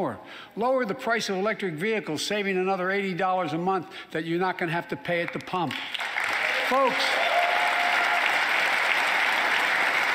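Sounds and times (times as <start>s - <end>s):
speech: 0.0s - 7.2s
audience applause at a political speech on clean energy and climate policy: 5.8s - 10.1s.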